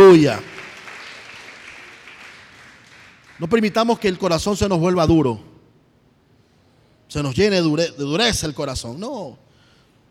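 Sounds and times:
speech: 0.1s - 0.5s, 3.4s - 5.5s, 7.1s - 9.4s
audience applause: 0.4s - 3.6s.

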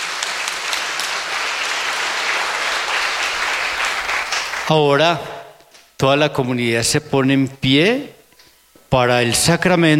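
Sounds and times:
audience applause welcoming a newly baptised person: 0.0s - 4.8s
speech: 4.7s - 5.3s, 6.0s - 8.2s, 8.9s - 9.9s.

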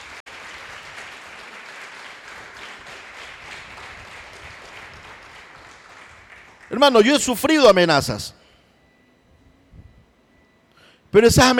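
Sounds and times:
audience applauding: 0.0s - 7.0s
speech: 6.7s - 8.4s, 11.2s - 11.5s.

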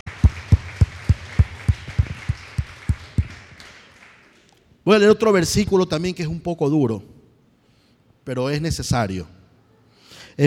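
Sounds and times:
audience applause: 0.0s - 4.6s
speech: 4.9s - 7.2s, 8.2s - 9.4s.

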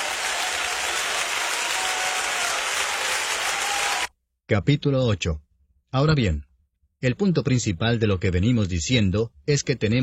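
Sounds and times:
loud sustained applause from a large crowd: 0.0s - 4.1s
speech: 4.5s - 10.0s.

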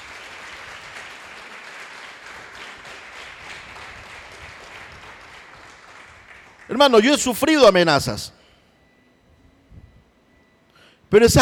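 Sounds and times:
crowd applauding in a large room: 0.0s - 6.8s
speech: 6.7s - 8.4s, 11.1s - 11.3s.

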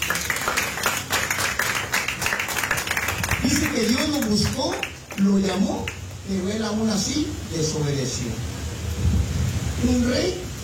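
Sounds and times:
audience clapping hands: 0.0s - 6.1s
speech: 3.8s - 9.1s, 9.8s - 10.4s.

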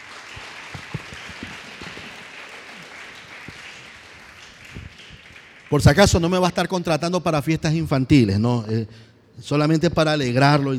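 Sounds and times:
congregation clapping in a church service: 0.0s - 7.0s
speech: 5.7s - 10.7s.

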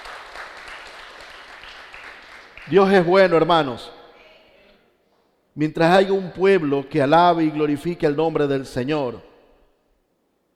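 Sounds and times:
crowd applauding: 0.0s - 3.0s
speech: 2.6s - 4.0s, 5.6s - 9.3s.

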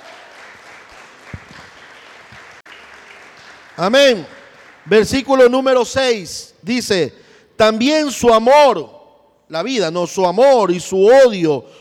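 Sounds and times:
audience applauding: 0.0s - 5.3s
speech: 3.8s - 11.7s.

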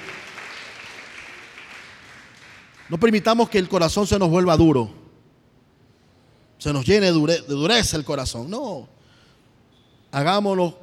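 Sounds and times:
audience applause: 0.0s - 2.9s
speech: 2.9s - 5.0s, 6.6s - 9.0s, 10.1s - 10.8s.

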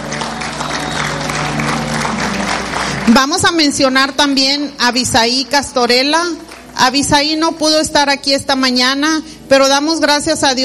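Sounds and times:
audience applause at a high school graduation ceremony: 0.0s - 3.4s
speech: 3.1s - 10.6s.

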